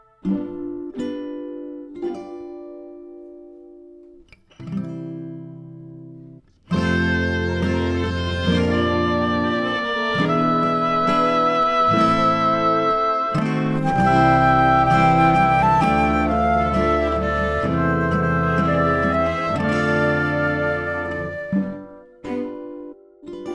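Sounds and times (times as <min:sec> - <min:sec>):
backing track: 0:06.8 - 0:22.0.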